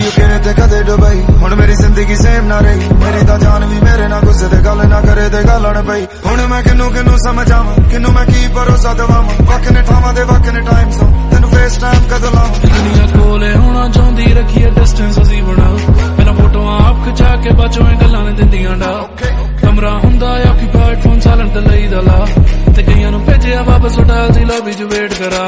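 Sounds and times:
Punjabi song: 0:00.0 - 0:25.4.

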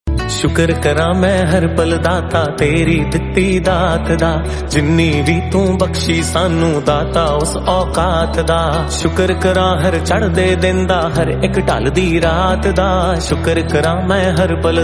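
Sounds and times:
devotional music: 0:00.1 - 0:14.8.

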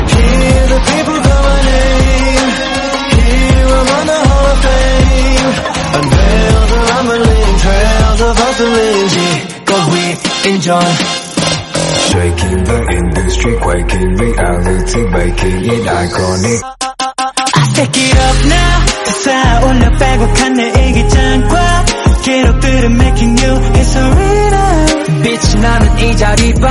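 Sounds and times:
Korean song: 0:00.0 - 0:26.6.

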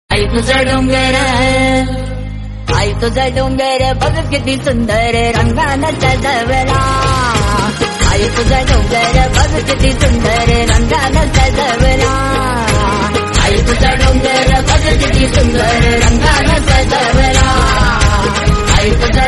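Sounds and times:
instrumental music: 0:00.1 - 0:19.2.

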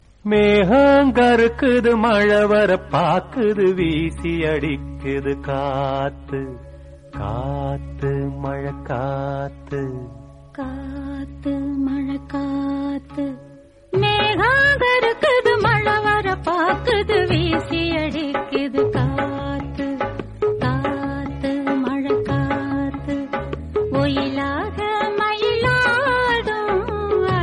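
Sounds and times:
Tamil song: 0:00.6 - 0:27.4.

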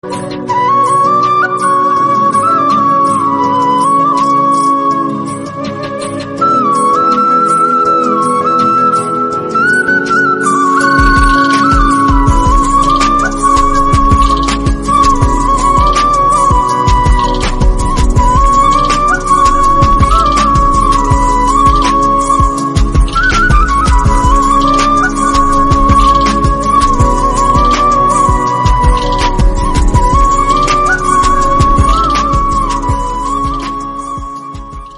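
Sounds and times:
flute background music: 0:00.0 - 0:34.9.

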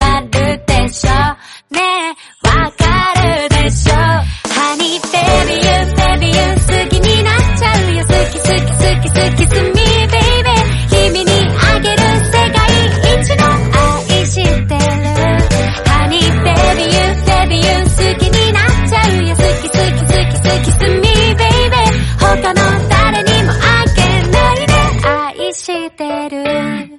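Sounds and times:
Japanese love song: 0:00.0 - 0:26.9.

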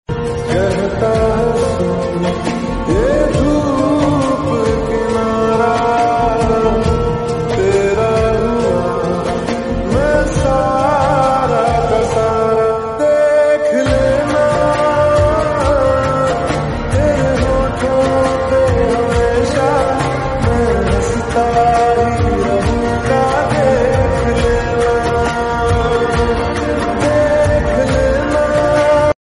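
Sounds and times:
slowed reverb music: 0:00.1 - 0:29.2.

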